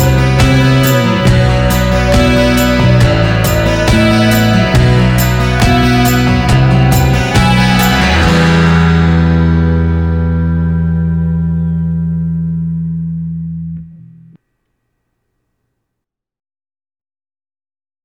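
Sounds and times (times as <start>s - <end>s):
acoustic guitar full mix: 0.0s - 13.9s.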